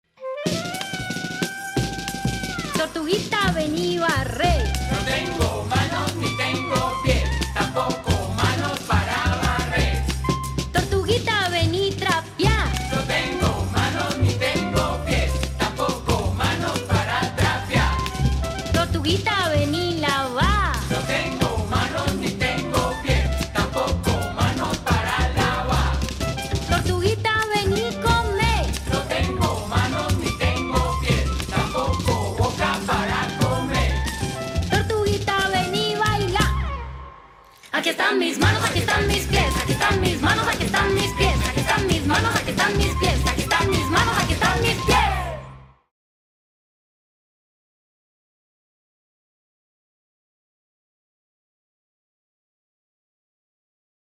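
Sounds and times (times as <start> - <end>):
afro game song from the northern Pacific: 0.2 - 45.7.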